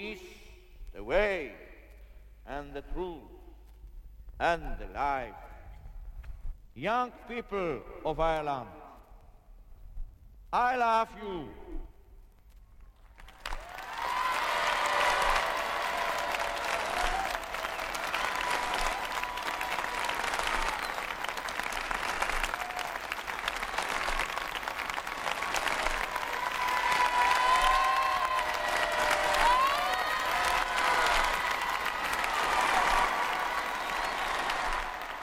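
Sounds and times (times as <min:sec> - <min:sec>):
speech: 0:01.0 - 0:01.6, 0:02.5 - 0:03.4, 0:04.4 - 0:05.5, 0:06.8 - 0:08.8, 0:10.5 - 0:11.9
vast outdoor crowd cheering and applauding: 0:13.2 - 0:35.2
scattered shouts: 0:13.6 - 0:21.0, 0:26.0 - 0:35.2.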